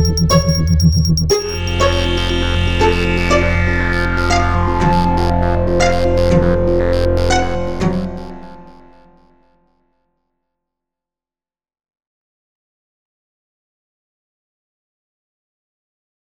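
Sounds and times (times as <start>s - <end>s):
synth at 120 bpm: 0.0s - 9.4s.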